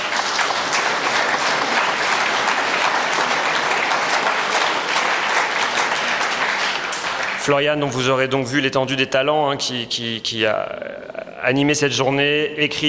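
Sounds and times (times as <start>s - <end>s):
audience applause: 0.0s - 7.8s
speech: 7.4s - 12.8s.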